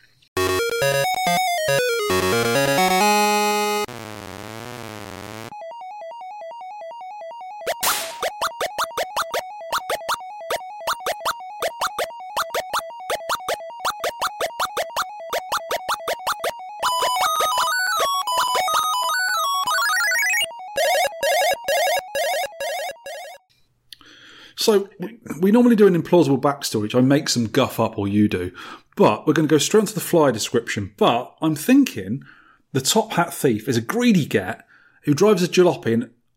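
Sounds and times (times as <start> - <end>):
chiptune-style arcade game sound effects: 0.4 - 23.4
speech: 24.7 - 36.2.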